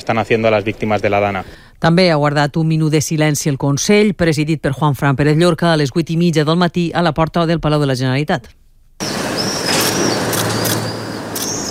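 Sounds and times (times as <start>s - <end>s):
speech: 0.1s - 9.1s
camera shutter clicks: 9.7s - 11.6s.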